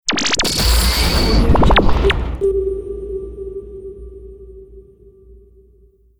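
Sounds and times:
radio image impact sound effect: 0.1s - 3.1s.

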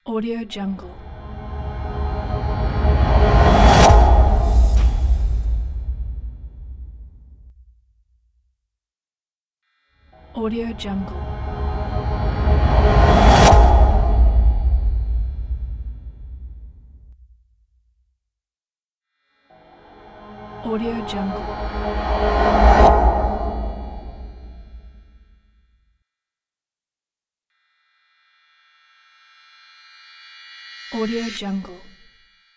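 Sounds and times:
cinematic whooshes: 0.9s - 7.2s, 10.5s - 16.8s, 19.8s - 25.0s.

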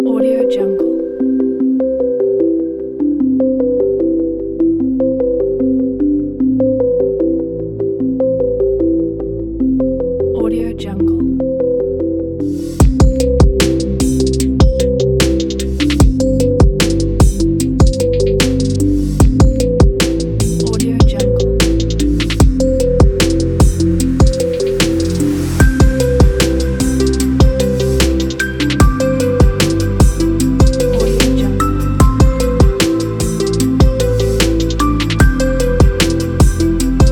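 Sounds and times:
exciting ambient technology music: 0.0s - 37.1s.

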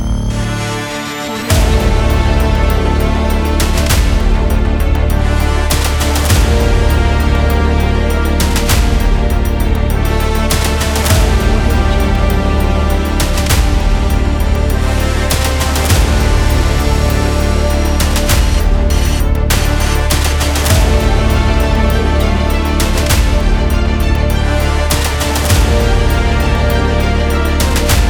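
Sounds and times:
intense game trailer tension music: 0.0s - 28.0s.

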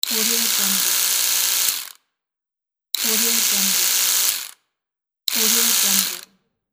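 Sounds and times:
electric toothbrush: 0.0s - 2.0s, 3.0s - 4.6s, 5.3s - 6.3s.

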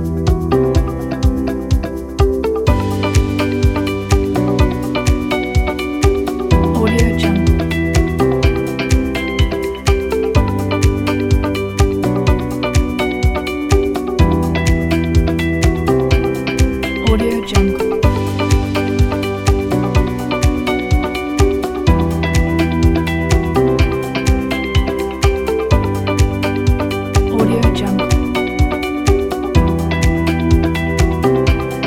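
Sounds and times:
inspiring uplifting upbeat corporate music: 0.0s - 31.8s.

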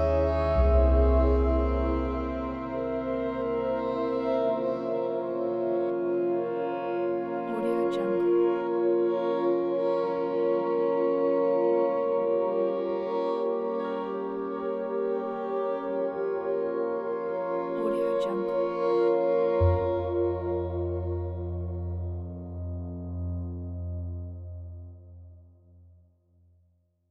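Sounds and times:
tragic orchestral soundscape: 0.0s - 25.5s.

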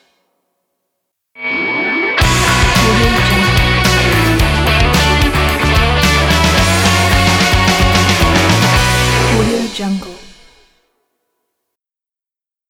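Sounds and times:
rock music logo: 1.4s - 9.5s.

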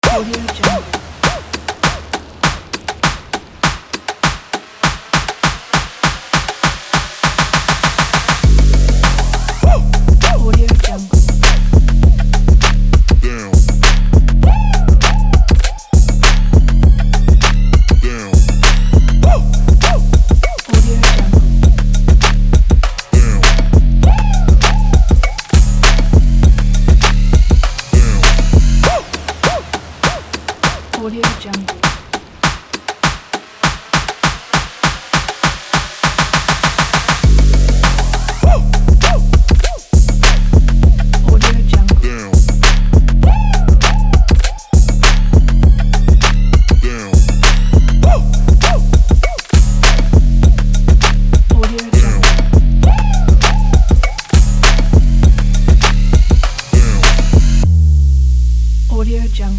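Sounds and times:
rap beat: 0.0s - 59.5s.

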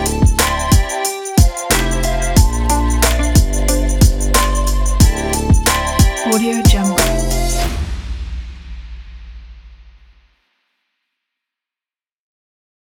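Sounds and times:
upbeat fashion hip hop music: 0.0s - 7.9s.

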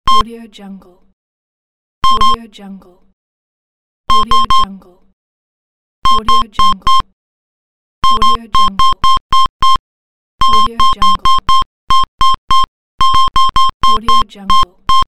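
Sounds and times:
barcode scanner: 2.0s - 2.4s, 4.1s - 4.6s, 6.1s - 7.1s, 8.0s - 9.8s, 10.4s - 15.0s.

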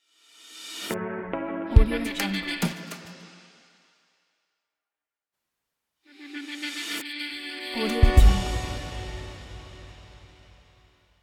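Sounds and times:
stylish intro music: 0.8s - 3.1s, 7.7s - 10.6s.

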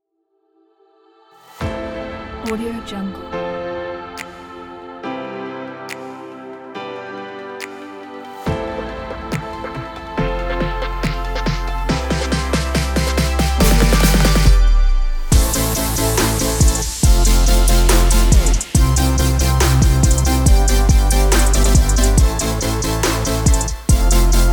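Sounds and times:
future bass music: 9.1s - 24.5s.

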